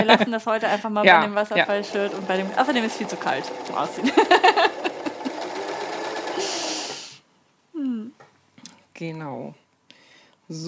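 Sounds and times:
speech: 0.0s - 4.7s, 9.0s - 9.6s, 10.5s - 10.6s
sewing machine stitching a sleeve: 1.6s - 7.2s
laughter: 3.6s - 5.6s.

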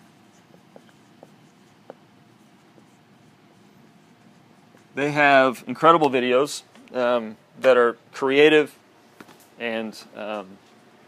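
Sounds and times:
names being written up on a board: 0.0s - 5.0s
speech: 5.0s - 8.8s, 9.6s - 10.7s.

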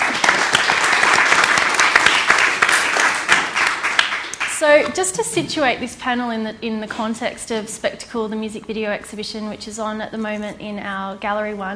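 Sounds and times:
audience clapping: 0.0s - 5.4s
speech: 4.6s - 11.7s.

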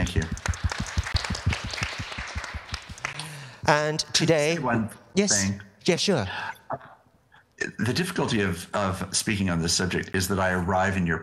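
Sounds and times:
audience applause: 0.1s - 3.3s
speech: 3.7s - 6.8s, 7.7s - 11.2s.

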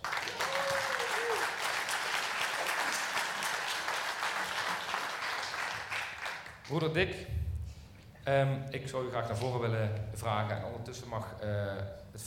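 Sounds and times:
audience applause: 0.0s - 6.7s
speech: 6.7s - 7.4s, 8.2s - 12.2s.

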